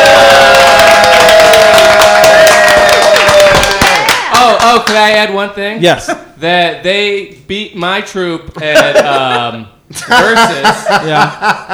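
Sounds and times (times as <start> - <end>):
audience whoops and cheers: 0.0 - 4.4
crowd applauding: 0.0 - 5.0
speech: 5.0 - 11.7
laughter: 8.5 - 11.7.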